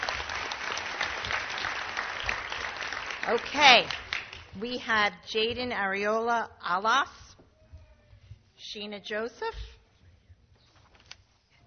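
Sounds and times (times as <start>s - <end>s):
audience applause: 0.0s - 4.5s
speech: 3.2s - 7.2s, 8.6s - 9.7s.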